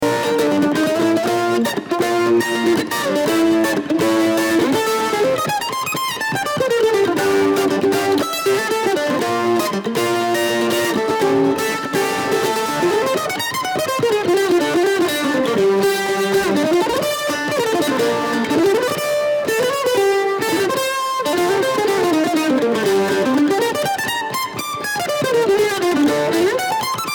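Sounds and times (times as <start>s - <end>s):
Kentucky mandolin: 0.0s - 27.0s.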